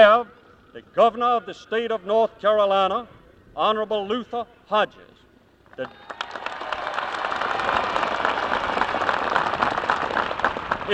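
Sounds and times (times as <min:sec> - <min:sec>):
speech: 0:00.0 - 0:05.1, 0:05.8 - 0:06.2
audience applause: 0:05.8 - 0:10.9.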